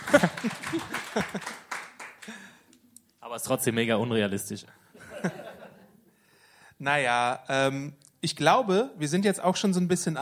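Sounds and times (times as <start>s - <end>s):
laughter: 0.0s - 1.8s, 5.0s - 6.0s
brief small applause with hand clapping: 0.0s - 2.6s
speech: 0.1s - 1.6s, 3.4s - 5.4s, 6.8s - 10.2s.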